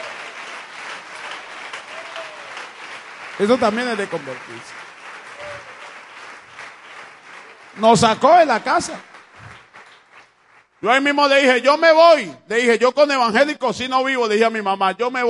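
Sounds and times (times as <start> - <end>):
loud audience applause: 0.0 - 11.4
speech: 3.4 - 4.8, 7.8 - 9.1, 10.8 - 15.2.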